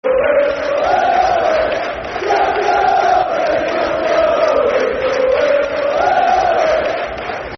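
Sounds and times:
football crowd chanting soccer songs: 0:00.1 - 0:07.5.

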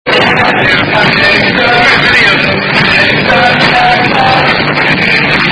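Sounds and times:
person singing: 0:00.1 - 0:05.4.

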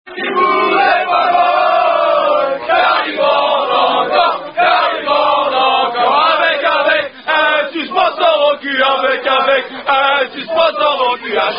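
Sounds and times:
people singing a French rugby song: 0:00.1 - 0:11.5.

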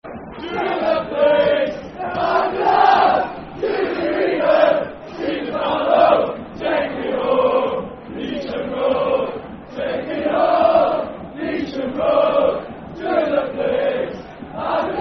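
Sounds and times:
football crowd chanting: 0:00.1 - 0:15.0.

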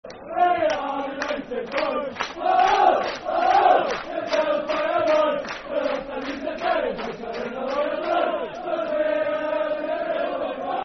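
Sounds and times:
football crowd chanting: 0:00.1 - 0:10.8.

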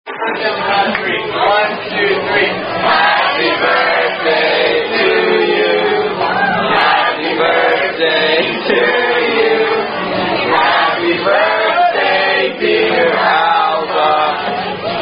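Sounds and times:
wait staff singing birthday song: 0:00.1 - 0:15.0.

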